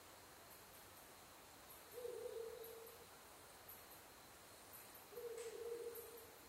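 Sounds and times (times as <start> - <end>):
Ural Owl hooting: 2.0 - 3.0, 5.1 - 6.3.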